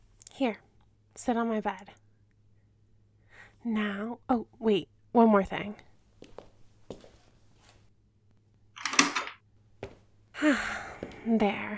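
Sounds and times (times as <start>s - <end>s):
speech: 0.4s - 0.6s, 1.2s - 2.0s, 3.6s - 5.9s, 10.4s - 11.7s
door being locked: 8.8s - 9.4s.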